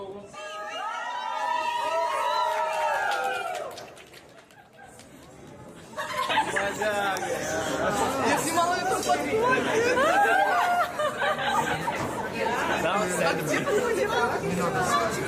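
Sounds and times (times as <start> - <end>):
large crowd cheering and shouting in played video: 0.2 - 3.8
laughter: 4.1 - 15.1.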